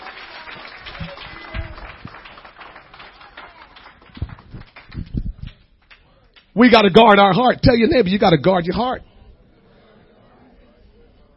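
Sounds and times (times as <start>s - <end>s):
crowd clapping hands: 0.0s - 6.6s
speech: 6.6s - 9.1s.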